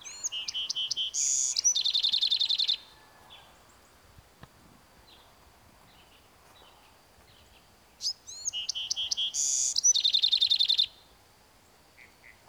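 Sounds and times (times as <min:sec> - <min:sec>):
Bewick's wren singing: 0:00.0 - 0:02.8, 0:08.3 - 0:10.9.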